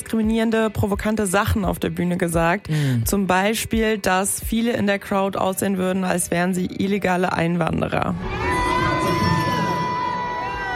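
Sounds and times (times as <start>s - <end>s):
speech: 0.1s - 8.6s
large crowd booing a performer: 8.2s - 10.7s
scattered shouts: 8.2s - 10.7s.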